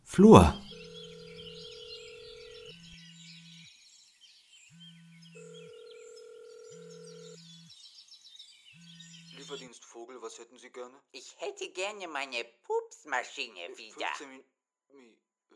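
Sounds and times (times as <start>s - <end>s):
birdsong chirping: 0.0s - 9.8s
speech: 0.2s - 0.6s, 10.4s - 15.2s
telephone ringing tone on a call: 0.6s - 2.9s, 5.4s - 7.6s.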